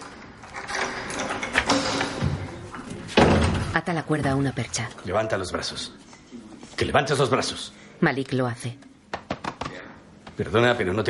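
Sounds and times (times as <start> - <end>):
door being closed: 0.5 - 3.8
speech: 3.8 - 6.1, 6.8 - 8.9, 10.4 - 11.0.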